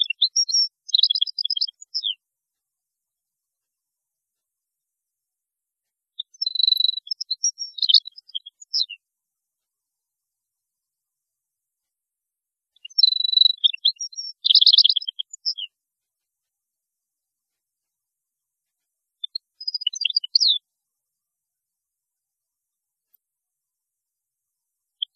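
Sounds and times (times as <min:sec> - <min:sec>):
European goldfinch song: 0:00.0 - 0:02.2, 0:06.2 - 0:09.0, 0:12.8 - 0:15.7, 0:19.2 - 0:20.6.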